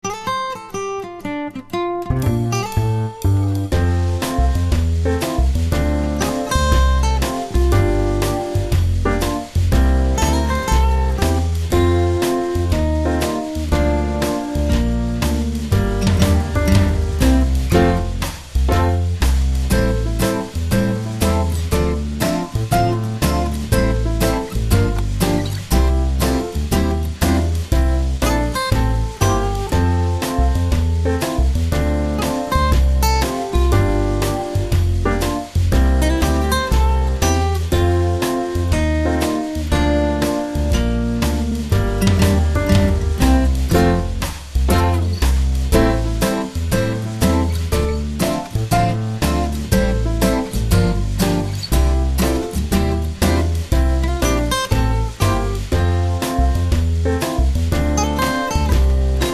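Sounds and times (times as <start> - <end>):
backing track: 2.0 - 59.3.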